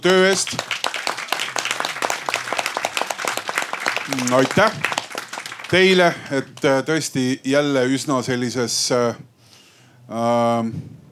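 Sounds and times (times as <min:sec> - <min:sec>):
speech: 0:00.0 - 0:00.8, 0:04.1 - 0:05.0, 0:05.7 - 0:09.3, 0:10.1 - 0:11.0
audience applause: 0:00.0 - 0:06.9.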